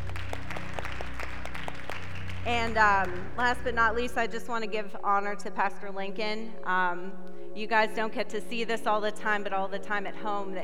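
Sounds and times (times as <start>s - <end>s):
audience hand clapping: 0.0s - 3.8s
speech: 2.5s - 10.6s.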